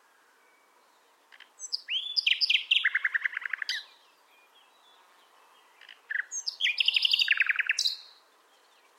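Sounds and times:
common nightingale song phrase: 0:00.2 - 0:08.9.

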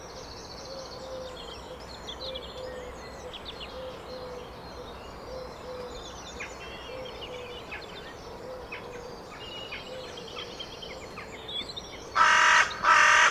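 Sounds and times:
carrion crow cawing: 0:12.2 - 0:13.3.

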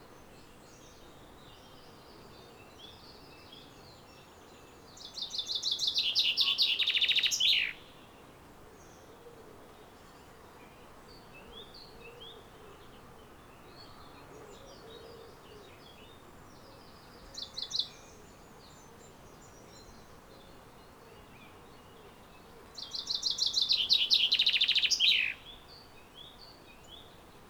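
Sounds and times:
common chaffinch singing: 0:05.2 - 0:07.9, 0:22.8 - 0:25.6.

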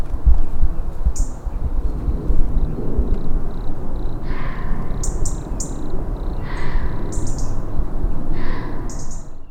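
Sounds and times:
low rumbling: 0:00.2 - 0:09.5
European robin call notes: 0:04.3 - 0:09.4.

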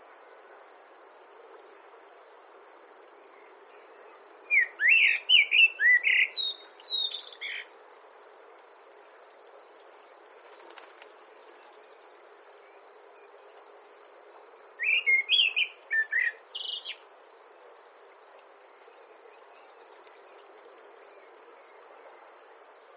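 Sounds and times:
common blackbird song: 0:04.5 - 0:07.7, 0:14.8 - 0:17.0.

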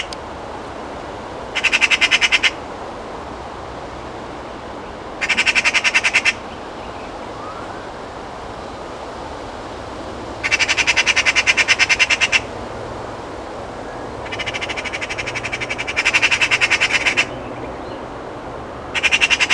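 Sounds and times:
Eurasian magpie chattering: 0:01.6 - 0:02.6, 0:05.2 - 0:06.4, 0:10.4 - 0:12.5, 0:14.2 - 0:17.4, 0:19.0 - 0:19.5.

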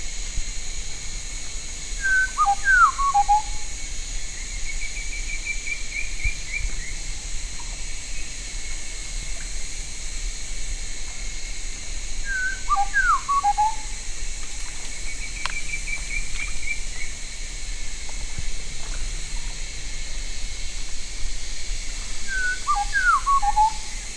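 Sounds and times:
steady hiss and droning noise: 0:00.0 - 0:24.1
downslurred whistled bird calls: 0:02.0 - 0:03.7, 0:12.3 - 0:13.9, 0:22.3 - 0:23.9.

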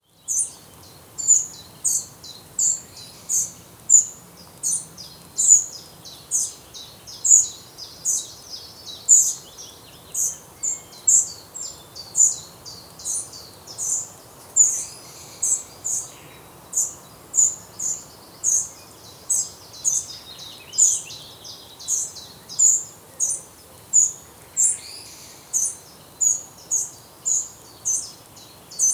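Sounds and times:
Eurasian wren ticking calls: 0:00.2 - 0:28.9.

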